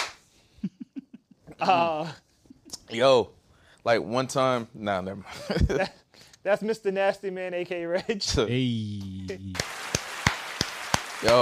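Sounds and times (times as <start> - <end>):
slow hand clapping: 0.0 - 0.2, 9.0 - 11.3
speech: 1.6 - 2.2, 2.9 - 9.7.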